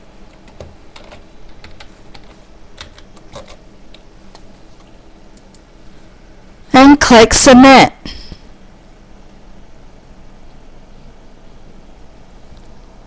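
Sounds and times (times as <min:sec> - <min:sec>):
typing on a computer keyboard: 0:00.3 - 0:04.5
speech: 0:06.8 - 0:08.0.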